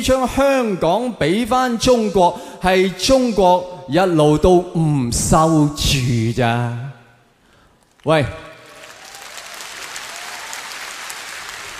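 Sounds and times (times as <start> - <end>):
speech: 0.0 - 6.8, 8.0 - 8.4
audience clapping during a show: 7.9 - 11.7.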